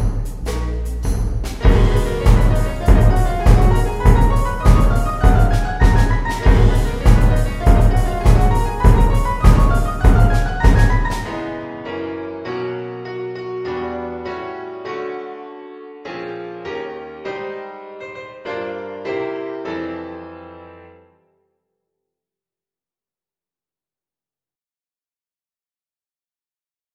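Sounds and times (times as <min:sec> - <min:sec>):
orchestra playing a potpourri: 0:00.4 - 0:11.8.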